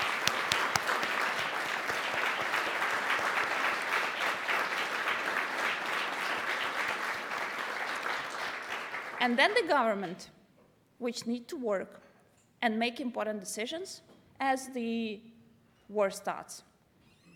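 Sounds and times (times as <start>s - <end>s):
audience applause: 0.0s - 9.2s
speech: 9.2s - 10.4s, 11.0s - 12.0s, 12.6s - 15.3s, 15.9s - 16.7s.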